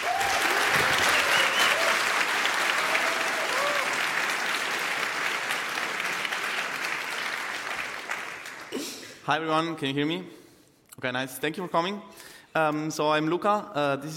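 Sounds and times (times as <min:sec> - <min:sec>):
faint cheers and whoops: 0:00.0 - 0:04.1
audience applause: 0:00.0 - 0:08.9
speech: 0:09.3 - 0:10.4, 0:11.0 - 0:14.1.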